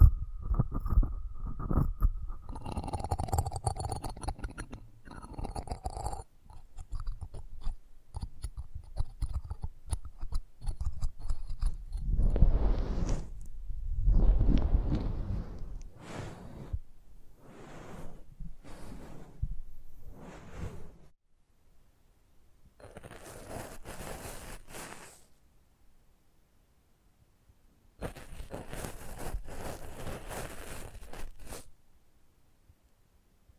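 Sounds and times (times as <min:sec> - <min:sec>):
close-up microphone crackling and rubbing: 0:00.0 - 0:21.1, 0:22.8 - 0:25.3, 0:28.0 - 0:31.7
brushing and scratching strokes: 0:06.5 - 0:21.1, 0:22.8 - 0:25.4, 0:28.0 - 0:31.7
bright hissy swishes: 0:12.0 - 0:13.4, 0:14.0 - 0:16.8, 0:17.4 - 0:21.1.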